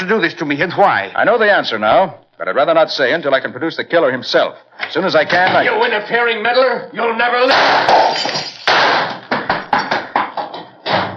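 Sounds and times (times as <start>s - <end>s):
speech: 0.0s - 8.8s
gunshots fired to shoot out the lights: 7.5s - 9.2s
glass shattering: 7.5s - 9.3s.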